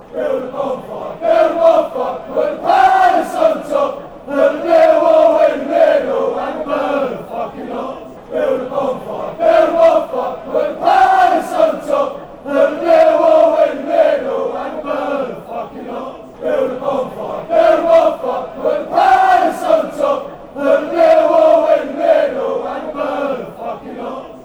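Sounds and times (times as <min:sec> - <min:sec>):
people chanting: 0:00.0 - 0:24.4.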